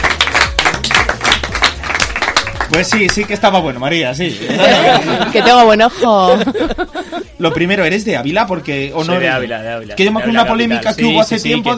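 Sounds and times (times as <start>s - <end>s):
scattered hand claps for a guest being introduced: 0.0s - 3.5s
speech: 2.8s - 11.7s
laughter: 4.3s - 7.9s.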